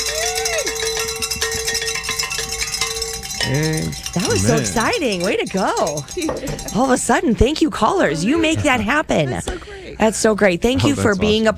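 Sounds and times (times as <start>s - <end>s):
hand bells ringing in celebration: 0.0s - 9.0s
speech: 3.4s - 11.5s
laughter: 3.5s - 5.0s, 6.1s - 11.4s.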